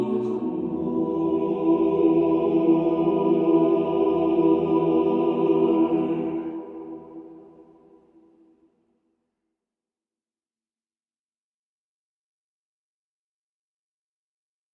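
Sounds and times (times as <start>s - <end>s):
Orthodox cathedral choir singing a Marian hymn: 0.0s - 8.0s.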